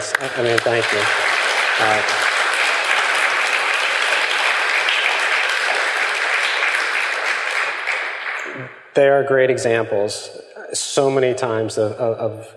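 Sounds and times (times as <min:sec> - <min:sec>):
audience applause: 0:00.0 - 0:08.7
speech: 0:00.2 - 0:02.2, 0:09.0 - 0:12.5.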